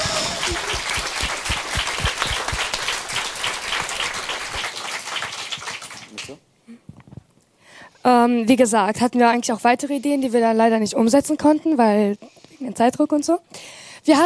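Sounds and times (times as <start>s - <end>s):
group applause: 0.0s - 6.4s
speech: 8.2s - 14.2s.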